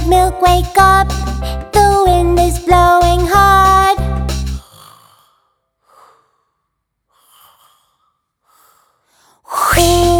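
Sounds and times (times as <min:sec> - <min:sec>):
speech: 0:00.1 - 0:03.8, 0:09.8 - 0:10.1
soft breathy inhales: 0:04.6 - 0:09.7.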